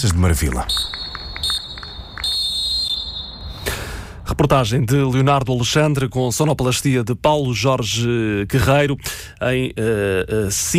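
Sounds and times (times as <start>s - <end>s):
speech: 0.0s - 1.0s, 4.4s - 10.7s
referee's whistle ending the game: 0.6s - 3.7s.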